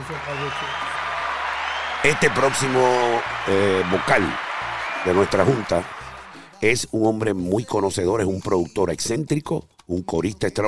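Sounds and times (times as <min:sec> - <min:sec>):
audience applause: 0:00.0 - 0:06.6
speech: 0:00.1 - 0:00.9, 0:02.0 - 0:06.0, 0:06.6 - 0:10.6.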